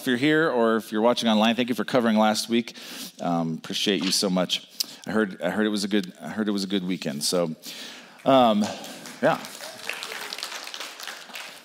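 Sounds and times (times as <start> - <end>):
speech: 0.0 - 9.6
audience clapping: 8.1 - 11.6.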